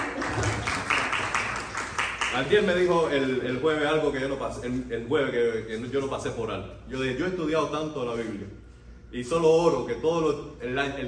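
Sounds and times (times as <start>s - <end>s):
room full of people applauding: 0.0s - 3.2s
speech: 2.4s - 11.0s.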